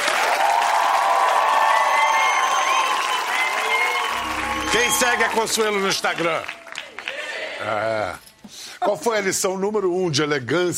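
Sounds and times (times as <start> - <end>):
audience applause: 0.0 - 7.9
speech: 4.8 - 6.6, 7.6 - 10.7.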